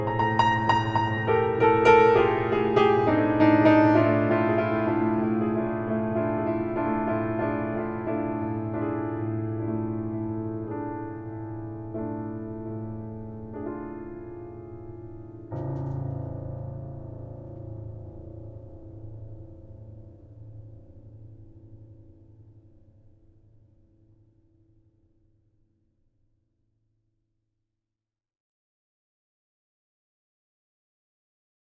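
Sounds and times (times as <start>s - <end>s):
piano: 0.0s - 24.7s.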